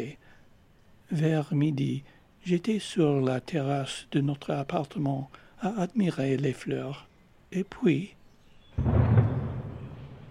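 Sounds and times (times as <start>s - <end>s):
speech: 1.1s - 8.2s, 8.8s - 9.0s
noon cannon shot in Nice: 8.8s - 10.2s.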